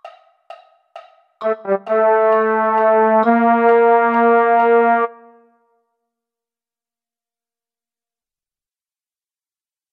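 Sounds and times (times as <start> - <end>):
baritone: 1.4 - 5.3.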